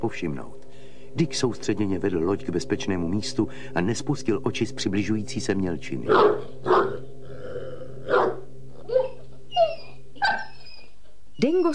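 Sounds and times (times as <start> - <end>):
speech: 0.0 - 0.6, 1.2 - 6.7
low hum: 0.0 - 11.7
dog whimpering and howling mournfully: 6.1 - 11.7.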